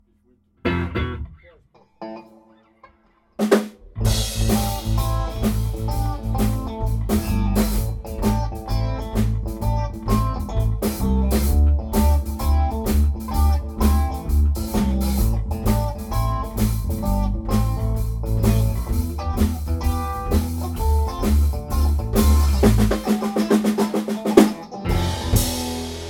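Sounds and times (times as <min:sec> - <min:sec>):
blues music: 0:00.1 - 0:26.0.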